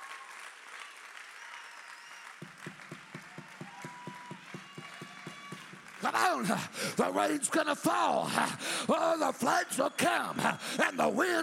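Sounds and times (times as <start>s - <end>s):
congregation clapping hands during a church sermon: 0.0s - 11.4s
speech: 6.0s - 11.4s.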